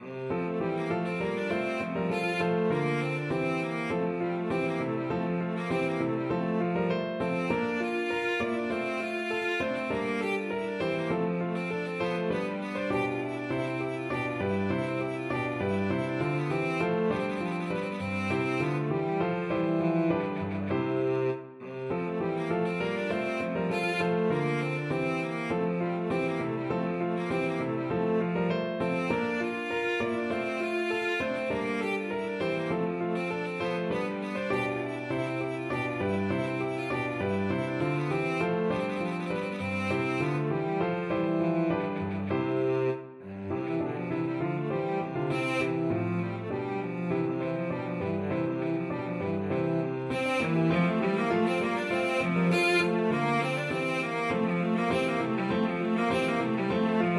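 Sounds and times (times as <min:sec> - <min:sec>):
violoncello: 0:00.0 - 0:57.1.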